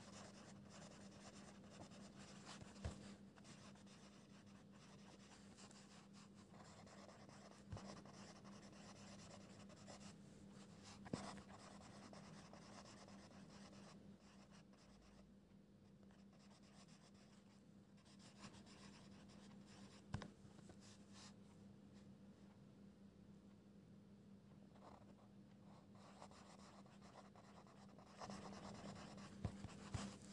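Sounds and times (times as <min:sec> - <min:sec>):
pencil scribbling: 0:00.0 - 0:10.1, 0:11.0 - 0:13.9, 0:26.1 - 0:30.3
low steady hum: 0:00.0 - 0:30.3.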